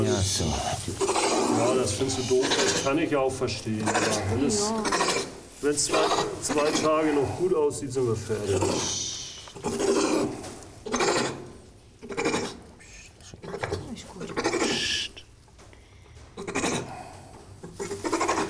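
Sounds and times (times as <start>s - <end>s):
kangaroo grumbling while held for eye cream treatment: 0.0s - 3.1s, 3.7s - 7.4s, 9.6s - 12.8s, 13.4s - 15.2s, 16.4s - 18.4s
speech: 1.8s - 9.0s.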